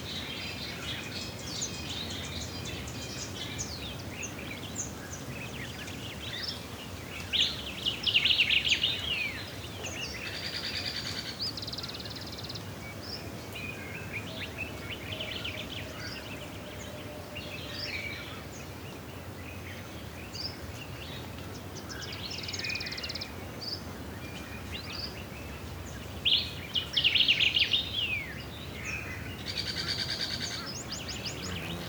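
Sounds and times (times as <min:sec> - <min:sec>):
wind: 0:00.0 - 0:31.8
African bush birds calling: 0:29.7 - 0:31.8.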